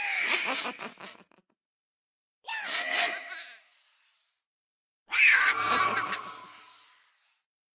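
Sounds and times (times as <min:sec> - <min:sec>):
laughter: 0:00.2 - 0:01.4, 0:05.5 - 0:06.7
Minecraft Vex creature sound: 0:05.3 - 0:06.7.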